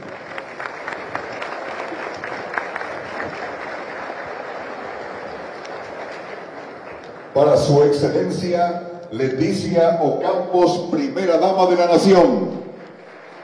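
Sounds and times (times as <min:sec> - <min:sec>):
audience applause: 0:00.0 - 0:08.3, 0:11.7 - 0:13.4
speech: 0:07.4 - 0:12.6.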